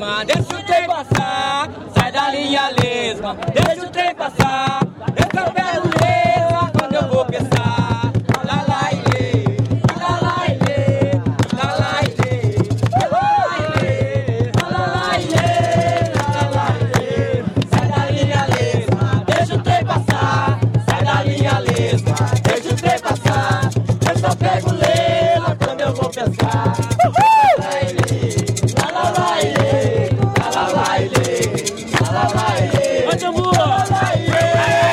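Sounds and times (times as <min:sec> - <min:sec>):
jongo music: 0:00.2 - 0:34.9.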